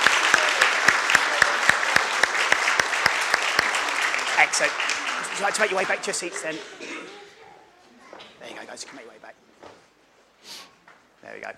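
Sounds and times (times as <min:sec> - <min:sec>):
audience applause: 0:00.0 - 0:07.2
speech: 0:04.4 - 0:07.2, 0:08.4 - 0:09.8, 0:11.2 - 0:11.5.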